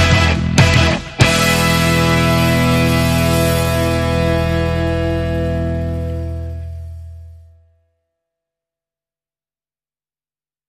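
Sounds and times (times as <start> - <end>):
rock music: 0.0 - 7.5.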